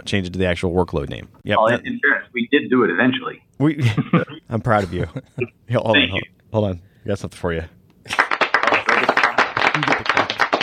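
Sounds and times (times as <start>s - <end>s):
speech: 0.0s - 8.2s
hand clapping: 8.1s - 10.6s.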